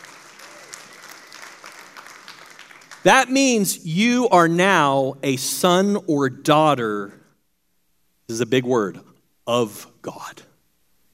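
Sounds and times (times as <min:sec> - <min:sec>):
congregation applauding during a church service: 0:00.0 - 0:03.6
speech: 0:03.0 - 0:07.2, 0:08.3 - 0:10.5.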